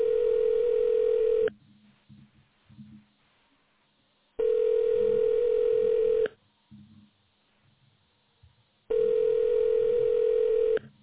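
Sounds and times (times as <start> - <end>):
telephone ringback tone: 0.0 - 1.5, 4.4 - 6.3, 8.9 - 10.8.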